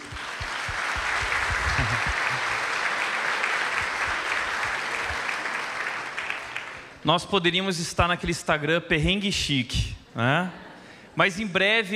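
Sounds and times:
laughter: 0.0s - 5.6s, 10.1s - 11.1s
audience applause: 0.0s - 7.0s
speech: 7.1s - 10.6s, 11.2s - 11.9s.

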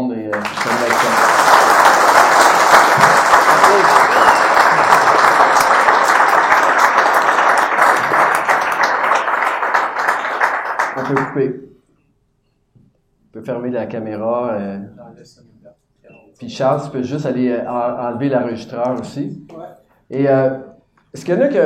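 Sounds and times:
audience applause: 0.3s - 11.4s
speech: 11.1s - 11.8s, 13.4s - 15.5s, 16.4s - 19.5s, 20.1s - 21.6s.

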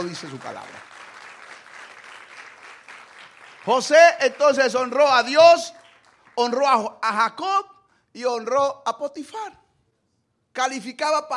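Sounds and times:
speech: 0.0s - 0.9s, 3.6s - 5.8s, 6.4s - 9.6s, 10.6s - 11.3s
crowd applause: 0.0s - 6.4s.

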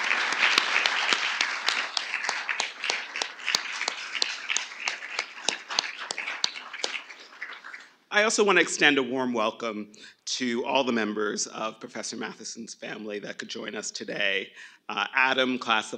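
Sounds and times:
audience round of applause: 0.0s - 7.9s
speech: 8.2s - 15.9s.

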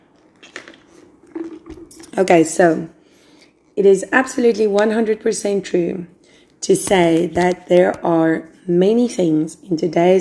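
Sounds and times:
person drinking water: 0.2s - 2.1s
speech: 2.2s - 3.0s, 3.8s - 10.1s.

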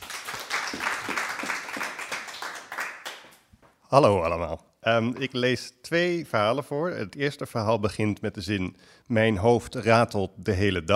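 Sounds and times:
audience applause: 0.0s - 3.4s
speech: 3.9s - 10.9s.

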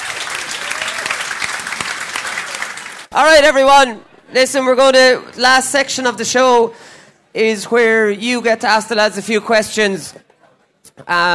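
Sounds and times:
audience applause: 0.0s - 3.1s
speech: 3.1s - 10.3s, 10.9s - 11.3s.

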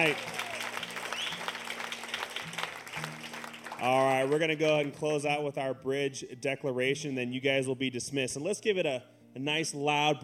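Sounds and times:
speech: 0.0s - 0.4s, 3.8s - 10.2s
audience applause: 0.0s - 4.6s
low sustained keyboard chords: 0.0s - 10.2s.

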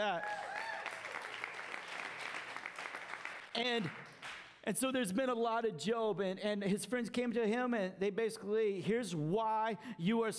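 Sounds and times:
speech: 0.0s - 0.4s, 3.6s - 10.3s
audience applause: 0.0s - 4.4s.

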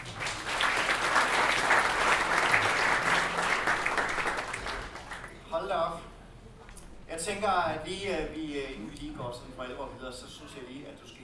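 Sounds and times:
audience applause: 0.0s - 5.4s
speech: 7.3s - 11.2s.

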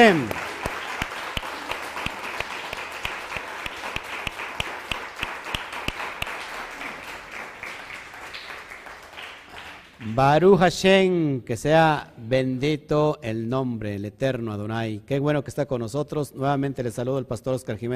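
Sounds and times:
speech: 0.0s - 0.4s, 10.2s - 17.9s
loud applause: 0.0s - 10.4s.

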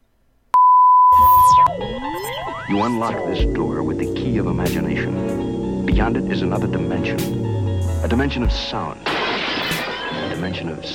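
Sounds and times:
electronic tone beep: 0.6s - 4.2s
speech: 2.7s - 9.2s, 10.4s - 10.9s.

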